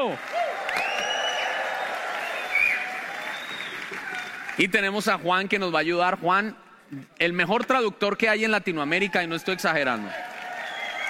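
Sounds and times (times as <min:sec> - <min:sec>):
speech: 0:00.0 - 0:00.4, 0:04.6 - 0:10.3
crowd applauding: 0:00.0 - 0:05.3, 0:09.1 - 0:11.0
high whoops and whistle-like cheers: 0:00.7 - 0:04.4, 0:10.5 - 0:11.0.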